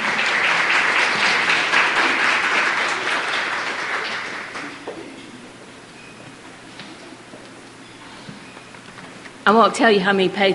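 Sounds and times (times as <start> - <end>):
audience applause welcoming a speaker: 0.0 - 4.9
speech: 9.5 - 10.5.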